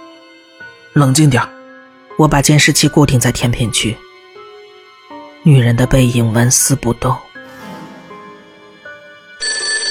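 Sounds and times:
speech: 0:00.9 - 0:01.6, 0:02.2 - 0:04.1, 0:05.4 - 0:07.3
electronic telephone ringing: 0:09.3 - 0:09.8.

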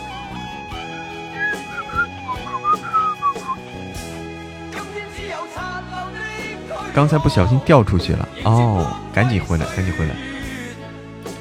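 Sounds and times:
whistling with lips: 0:00.7 - 0:03.8
speech: 0:07.0 - 0:10.3.

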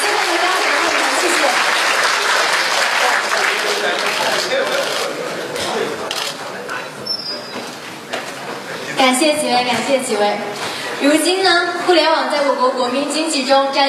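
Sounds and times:
crowd clapping warmly: 0:00.0 - 0:06.4
speech: 0:09.1 - 0:13.8.

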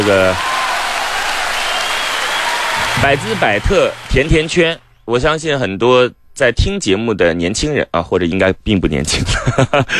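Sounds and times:
applause: 0:00.0 - 0:04.8
speech: 0:00.1 - 0:00.5, 0:03.0 - 0:09.9.

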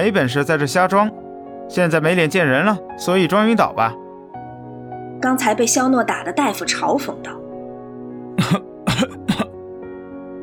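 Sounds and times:
speech: 0:00.0 - 0:04.0, 0:05.2 - 0:07.4, 0:08.4 - 0:09.2
man coughing raspily: 0:08.4 - 0:09.6.

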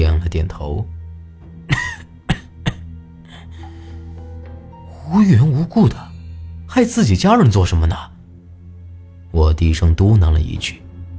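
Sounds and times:
speech: 0:00.3 - 0:01.0, 0:05.1 - 0:06.1, 0:06.7 - 0:08.1, 0:09.3 - 0:10.8
coughing: 0:01.7 - 0:03.8.

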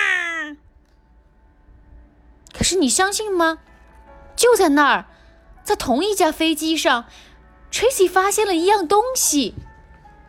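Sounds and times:
baby wailing on an airplane: 0:00.0 - 0:00.6
speech: 0:02.6 - 0:03.7, 0:04.4 - 0:09.7.

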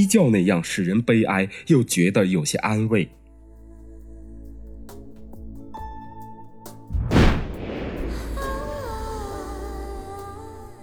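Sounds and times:
speech: 0:00.0 - 0:03.2
distant artillery fire: 0:07.0 - 0:08.7.

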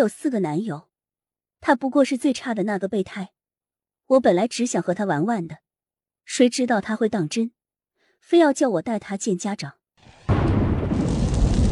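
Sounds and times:
speech: 0:00.0 - 0:00.9, 0:01.6 - 0:03.4, 0:04.1 - 0:05.6, 0:06.2 - 0:07.6, 0:08.2 - 0:09.8
rumbling thunder: 0:10.3 - 0:11.7.

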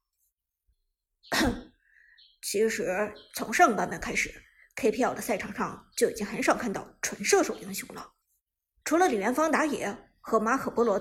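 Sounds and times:
speech: 0:01.3 - 0:01.6, 0:02.5 - 0:08.2, 0:08.9 - 0:10.9
cough: 0:01.3 - 0:01.8.

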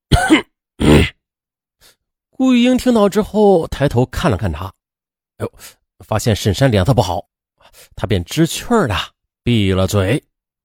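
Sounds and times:
person coughing: 0:00.1 - 0:01.2
speech: 0:02.4 - 0:04.8, 0:05.4 - 0:10.3.

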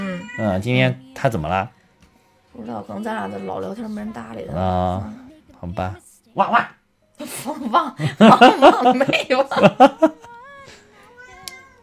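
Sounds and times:
cat meowing: 0:00.0 - 0:00.7
speech: 0:00.4 - 0:01.8, 0:02.6 - 0:10.3
laughter: 0:08.0 - 0:10.3.

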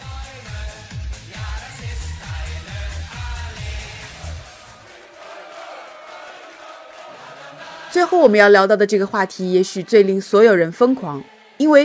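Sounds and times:
football fans chanting: 0:00.0 - 0:11.8
speech: 0:07.9 - 0:11.8.

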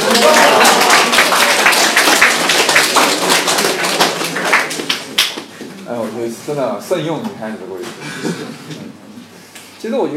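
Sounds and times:
applause: 0:00.0 - 0:05.5
speech: 0:06.5 - 0:09.1, 0:09.8 - 0:10.1.

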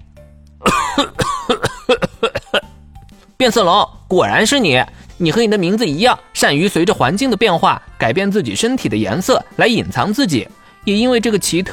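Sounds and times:
man coughing violently: 0:00.6 - 0:02.7
speech: 0:03.4 - 0:11.7.

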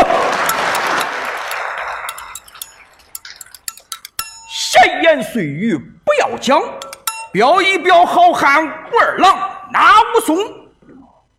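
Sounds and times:
audience applause: 0:00.0 - 0:02.4
sharp evenly spaced clicks tapping out a quick rhythm: 0:00.4 - 0:04.8, 0:06.4 - 0:07.5
speech: 0:05.1 - 0:10.6.

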